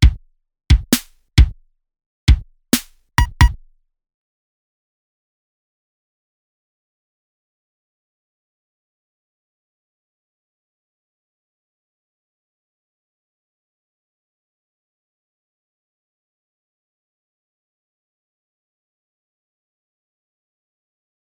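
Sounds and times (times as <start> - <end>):
lofi drums: 0.0 - 1.5, 2.3 - 3.6.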